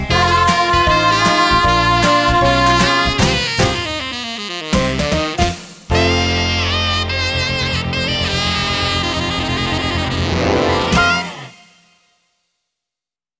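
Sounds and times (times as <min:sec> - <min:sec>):
rock music: 0:00.0 - 0:03.9, 0:04.8 - 0:11.6.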